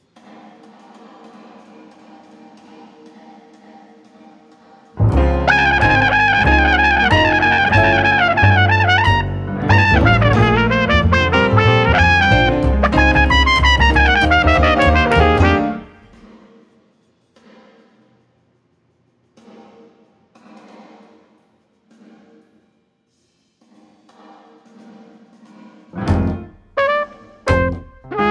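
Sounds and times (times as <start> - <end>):
play-along backing music: 5.0 - 16.2, 26.0 - 28.2.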